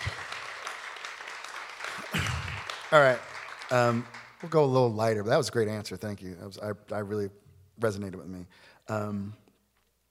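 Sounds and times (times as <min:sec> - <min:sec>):
audience applause: 0:00.0 - 0:04.8
speech: 0:02.9 - 0:09.4.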